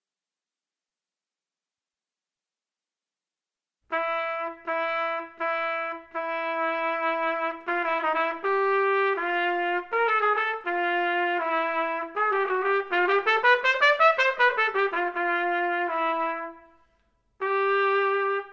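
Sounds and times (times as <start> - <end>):
trumpet playing maestoso: 3.9 - 18.5.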